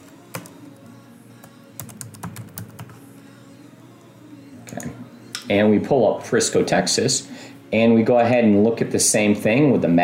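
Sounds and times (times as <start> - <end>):
faint steady hum: 0.0 - 10.0
computer keyboard typing a place name into a real estate website: 0.3 - 0.6, 1.8 - 3.0
speech: 4.7 - 10.0.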